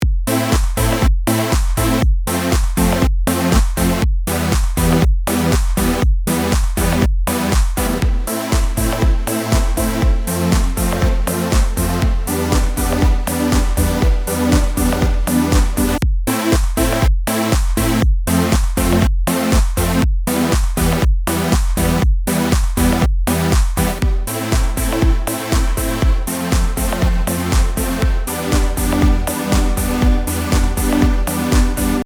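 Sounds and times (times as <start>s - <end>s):
electronic dance music: 0.3s - 32.0s.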